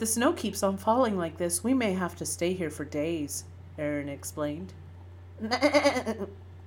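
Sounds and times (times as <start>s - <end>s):
speech: 0.0s - 4.8s, 5.4s - 6.4s
goat bleating: 5.4s - 6.3s.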